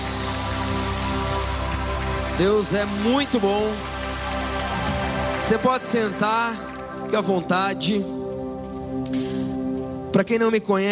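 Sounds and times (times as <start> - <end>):
audience applauding: 0.0 - 7.8
speech: 2.4 - 4.4, 5.5 - 8.2, 9.0 - 9.4, 10.2 - 10.9.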